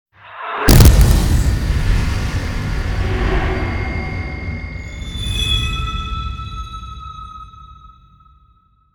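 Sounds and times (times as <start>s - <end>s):
impact hit swell: 0.3s - 5.5s.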